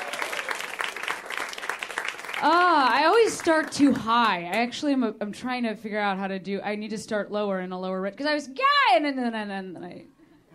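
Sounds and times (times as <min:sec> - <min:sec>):
comedy club audience clapping at UCB: 0:00.0 - 0:04.7
speech: 0:02.4 - 0:10.2.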